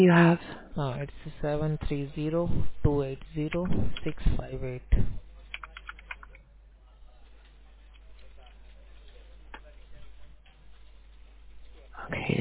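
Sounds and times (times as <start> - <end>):
speech: 0.0 - 5.2, 12.0 - 12.3
phone line hum: 0.0 - 12.3
typing a claim number on a computer keyboard: 5.5 - 6.4.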